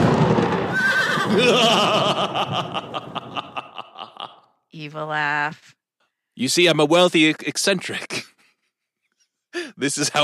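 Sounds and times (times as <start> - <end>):
horses neighing: 0.7 - 2.1
laughter: 0.8 - 4.6
speech: 1.3 - 3.2, 4.7 - 5.8, 6.4 - 8.3, 9.6 - 10.2.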